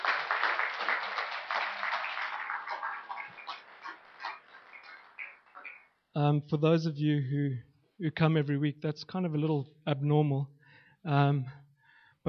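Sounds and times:
audience applause: 0.0s - 5.9s
speech: 6.2s - 11.6s.

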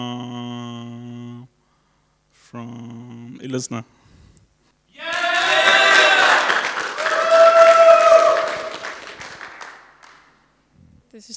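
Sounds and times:
speech: 2.5s - 4.0s
audience applause: 5.0s - 10.3s.

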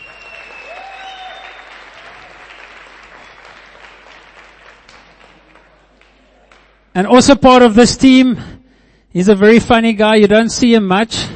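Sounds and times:
church gathering applause: 0.0s - 6.9s
speech: 7.0s - 8.5s, 9.2s - 11.3s.

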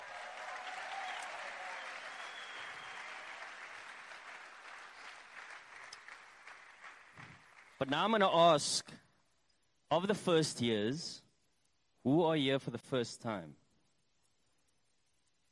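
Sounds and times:
crowd applauding: 0.0s - 8.1s
speech: 7.8s - 9.0s, 9.9s - 11.2s, 12.0s - 13.6s.

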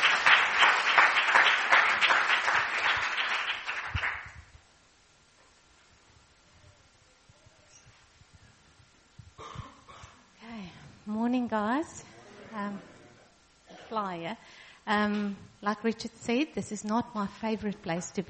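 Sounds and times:
gathering applauding to welcome a speaker: 0.0s - 4.5s
speech: 11.5s - 12.9s, 13.9s - 18.2s.

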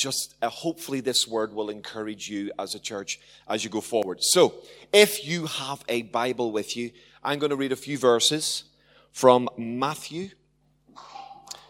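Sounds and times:
speech: 0.0s - 10.4s
sneeze: 10.9s - 11.6s.

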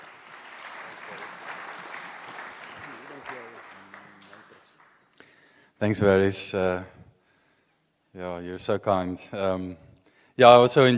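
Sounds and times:
audience clapping: 0.0s - 5.5s
speech: 5.8s - 7.0s, 8.2s - 9.8s, 10.4s - 10.9s.

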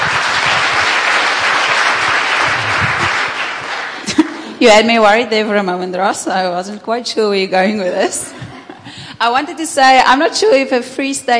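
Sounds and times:
audience applause: 0.0s - 4.5s
speech: 4.6s - 8.5s, 9.2s - 11.3s.

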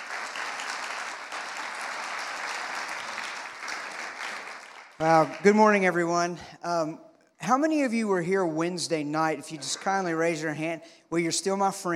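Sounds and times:
church congregation applause welcoming guest speakers: 0.0s - 6.1s, 9.3s - 10.6s
speech: 5.0s - 11.9s.

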